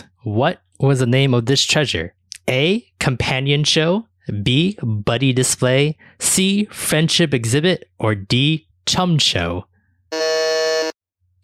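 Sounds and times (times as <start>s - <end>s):
speech: 0.2s - 10.2s
quiz electronic buzzer: 10.1s - 11.0s.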